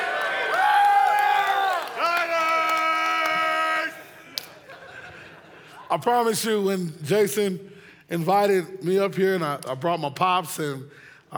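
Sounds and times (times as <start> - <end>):
crowd screaming and hollering: 0.0 - 4.2
laughter: 2.0 - 6.4
speech: 5.9 - 11.3.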